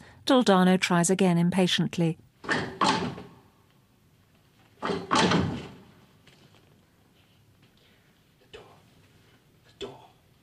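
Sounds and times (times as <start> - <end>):
speech: 0.3 - 3.0
heavy secret door grinding open: 2.4 - 3.3, 4.8 - 6.0.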